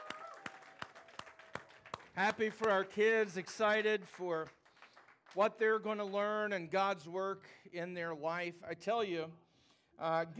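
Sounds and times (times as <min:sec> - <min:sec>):
group clapping in a steady rhythmic beat: 0:00.0 - 0:06.5
speech: 0:02.2 - 0:04.6, 0:05.3 - 0:09.4, 0:10.0 - 0:10.3.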